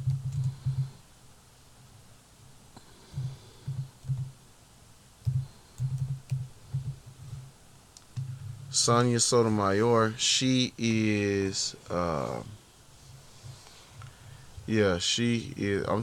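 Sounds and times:
faint typing on a computer keyboard: 0.0 - 0.9, 3.7 - 4.3, 5.2 - 7.0
speech: 8.8 - 12.6, 14.7 - 16.0.

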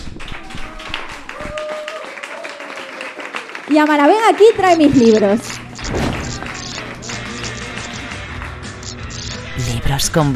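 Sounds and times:
applause: 0.0 - 5.6, 6.4 - 8.7
speech: 3.7 - 5.6, 10.0 - 10.3.

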